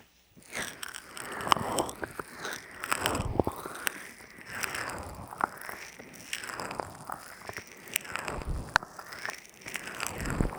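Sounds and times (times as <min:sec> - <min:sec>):
sharp crackling snaps and crunchy clicks: 0:00.0 - 0:10.5
wet squelching rubs of ear massage with oil and lotion: 0:00.4 - 0:10.5.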